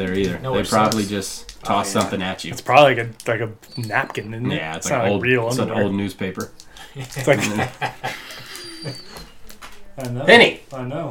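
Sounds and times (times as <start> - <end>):
speech: 0.0 - 8.2, 8.8 - 9.2, 10.0 - 11.0
dog whistling through its nose: 3.6 - 4.5, 8.4 - 9.4
laughter: 6.8 - 9.4.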